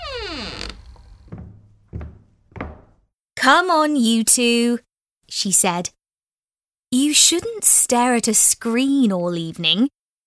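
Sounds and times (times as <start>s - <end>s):
door creaking open: 0.0s - 3.0s
dull thumps: 0.0s - 3.0s
speech: 3.4s - 6.0s, 6.9s - 10.0s.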